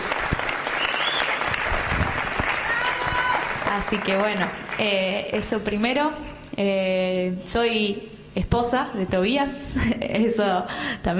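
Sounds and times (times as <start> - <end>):
loud audience applause: 0.0 - 5.0
speech: 3.8 - 11.1.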